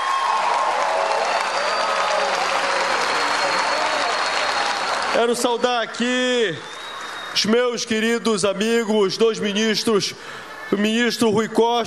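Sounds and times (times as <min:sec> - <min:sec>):
audience applause: 0:00.0 - 0:07.4
speech: 0:05.2 - 0:06.8, 0:07.4 - 0:11.8.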